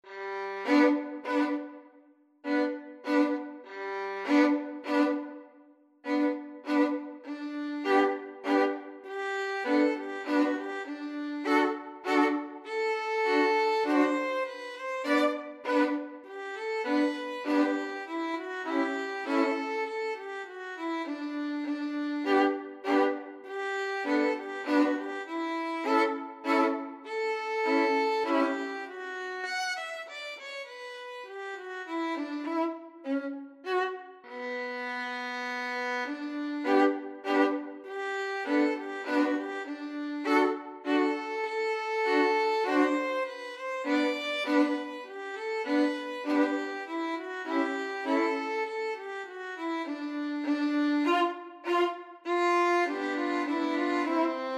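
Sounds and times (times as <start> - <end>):
violin duet: 0.0 - 54.5.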